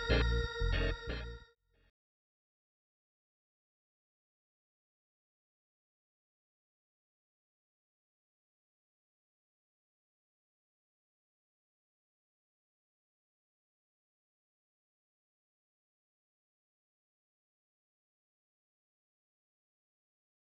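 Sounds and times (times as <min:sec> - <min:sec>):
XK1 B3 organ demo playing: 0:00.0 - 0:01.5.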